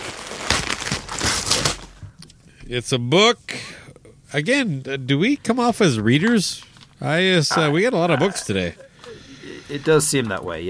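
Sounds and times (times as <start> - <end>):
gift wrapping paper crinkling as a present is unwrapped: 0.0 - 2.0
speech: 2.7 - 3.7, 4.3 - 8.9, 9.7 - 10.6.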